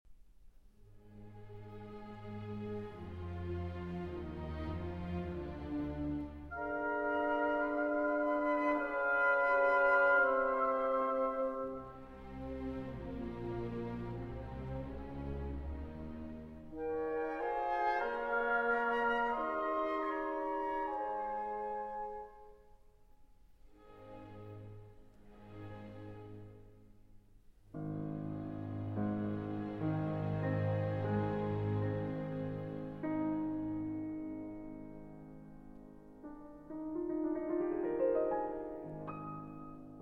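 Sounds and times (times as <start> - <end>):
piano concerto slow movement: 0.8 - 22.9, 23.6 - 40.0.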